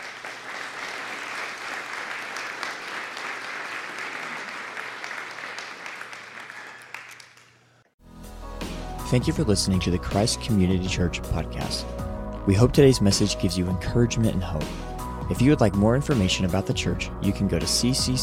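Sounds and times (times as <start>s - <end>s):
crowd clapping: 0.0s - 7.9s
speech: 9.1s - 18.2s.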